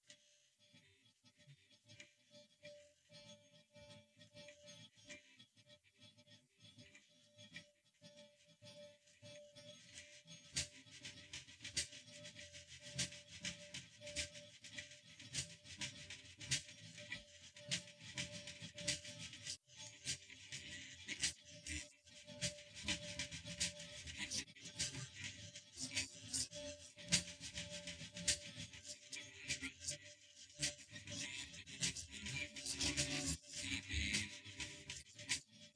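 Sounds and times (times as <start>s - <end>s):
percussion: 9.9s - 21.8s, 22.4s - 29.8s, 30.6s - 35.4s.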